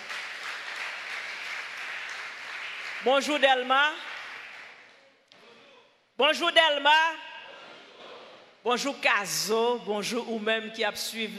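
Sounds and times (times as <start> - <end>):
audience applauding: 0.0 - 4.9
speech: 3.0 - 4.1, 6.2 - 7.3, 8.6 - 11.3.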